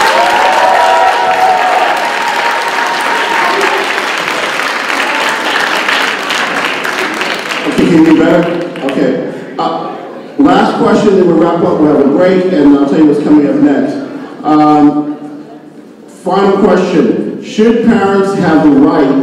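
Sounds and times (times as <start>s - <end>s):
audience applause: 0.0s - 9.1s
speech: 7.9s - 9.8s, 10.6s - 15.2s, 16.2s - 19.2s.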